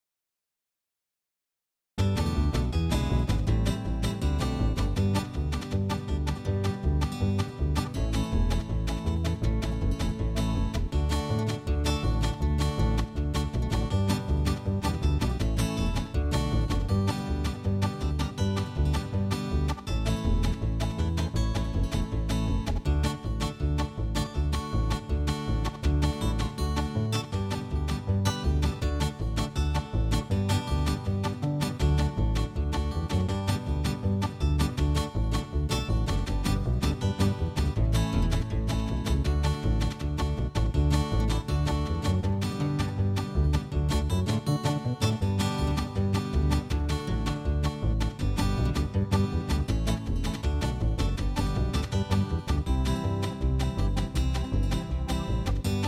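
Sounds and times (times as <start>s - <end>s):
uptempo ragtime: 2.0s - 55.8s.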